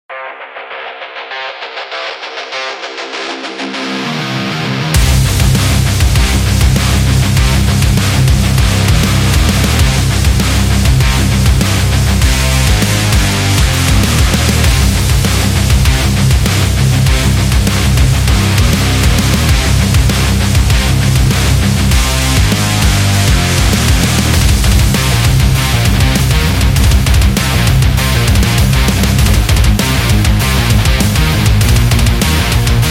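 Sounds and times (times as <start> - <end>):
metal music: 0.1 - 32.8.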